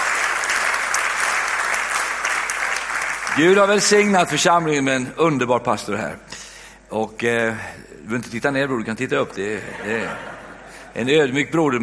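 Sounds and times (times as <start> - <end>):
audience applause: 0.0 - 4.1
speech: 3.4 - 6.3, 6.9 - 10.3, 10.9 - 11.8
laughter: 9.4 - 11.0.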